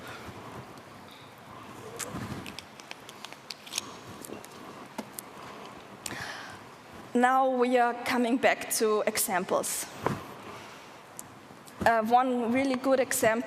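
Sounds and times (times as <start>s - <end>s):
person sipping a drink: 1.1s - 6.2s
speech: 7.2s - 10.1s, 11.9s - 13.4s.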